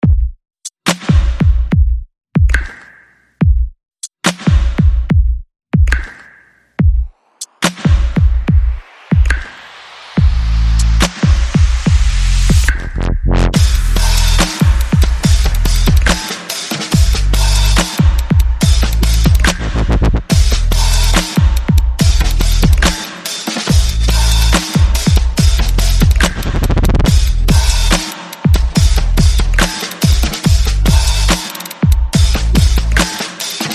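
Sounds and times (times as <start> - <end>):
percussion: 0.0 - 33.7
bass: 10.2 - 16.2, 17.0 - 17.8, 18.5 - 23.0, 23.7 - 28.0, 28.6 - 31.4, 32.1 - 33.1.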